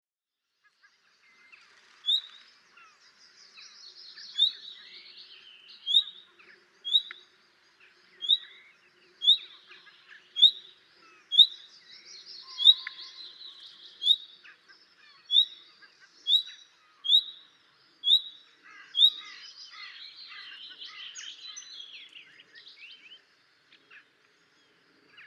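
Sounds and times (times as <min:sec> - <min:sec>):
common nightingale whistled calls: 0:02.0 - 0:02.9, 0:04.1 - 0:06.2, 0:06.8 - 0:07.2, 0:08.2 - 0:14.3, 0:15.1 - 0:15.6, 0:16.3 - 0:22.2.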